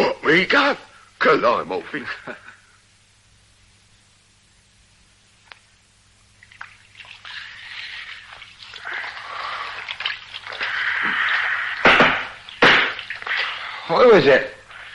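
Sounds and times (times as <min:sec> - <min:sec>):
speech: 0:00.3 - 0:02.4, 0:13.9 - 0:14.6
water splashing as someone washes their face: 0:06.3 - 0:14.0.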